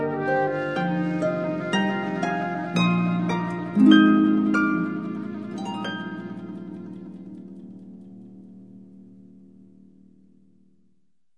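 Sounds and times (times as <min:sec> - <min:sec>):
classical harp duo: 0:00.0 - 0:09.0.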